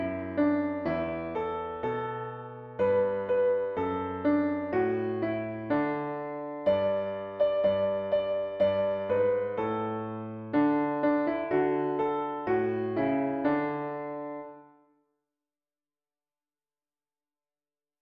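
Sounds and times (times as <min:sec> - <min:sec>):
piano piece: 0:00.0 - 0:14.9.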